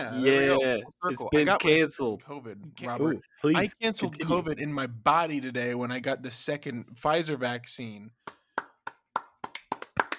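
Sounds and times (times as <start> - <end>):
speech: 0.0 - 8.4
hand clapping: 8.2 - 10.1.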